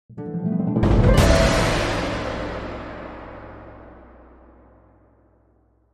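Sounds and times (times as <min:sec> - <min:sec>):
quick crescendo orchestral sting: 0:00.2 - 0:04.2.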